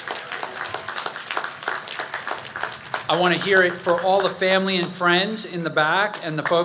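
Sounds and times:
audience applause at a commencement ceremony: 0:00.0 - 0:05.2
speech: 0:03.1 - 0:06.6.

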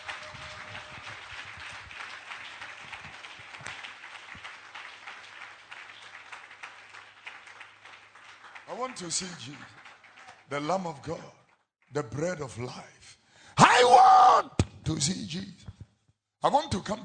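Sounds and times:
crowd clapping hands: 0:00.0 - 0:11.6
speech: 0:08.8 - 0:09.8, 0:10.5 - 0:13.2, 0:13.8 - 0:15.6, 0:16.4 - 0:17.0.

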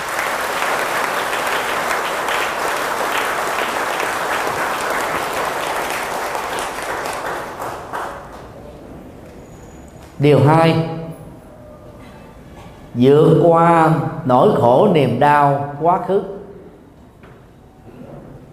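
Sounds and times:
big round of audience applause: 0:00.0 - 0:08.6
speech: 0:10.2 - 0:11.0, 0:13.0 - 0:16.4.

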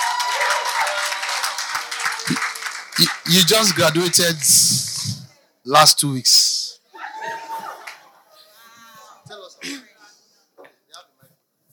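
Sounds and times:
audience clapping hands: 0:00.0 - 0:05.2, 0:07.7 - 0:08.2
speech: 0:03.0 - 0:04.9, 0:05.6 - 0:06.5.

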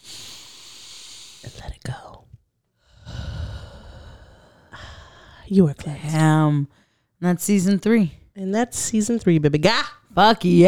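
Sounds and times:
deep breath in: 0:00.0 - 0:01.6, 0:02.8 - 0:05.5, 0:06.7 - 0:07.2
speech: 0:01.4 - 0:02.3, 0:05.5 - 0:10.6.

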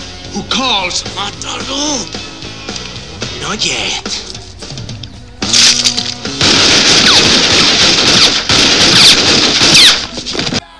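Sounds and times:
speech: 0:00.4 - 0:02.3, 0:03.4 - 0:04.4
pistol gunfire in an action movie gunfight: 0:05.4 - 0:10.6.

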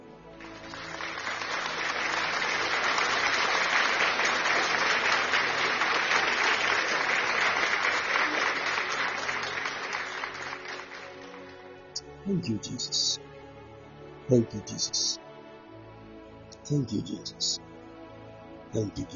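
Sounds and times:
audience clapping during a church service: 0:00.3 - 0:13.2
speech: 0:12.3 - 0:13.3, 0:14.3 - 0:15.2, 0:16.7 - 0:17.7, 0:18.7 - 0:19.1.

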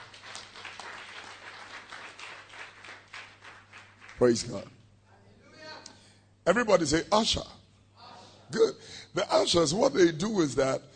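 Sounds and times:
audience clapping: 0:00.0 - 0:04.7
speech: 0:04.2 - 0:04.8, 0:06.4 - 0:07.6, 0:08.5 - 0:10.9.

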